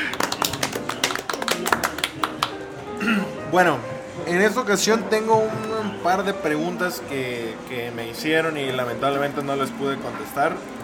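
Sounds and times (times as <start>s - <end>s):
applause sound effect: 0.0s - 2.7s
speech: 3.5s - 10.8s.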